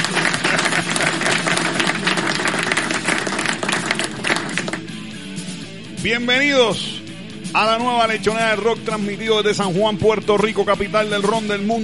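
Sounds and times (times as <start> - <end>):
applause: 0.0 - 4.9
speech: 6.0 - 11.8.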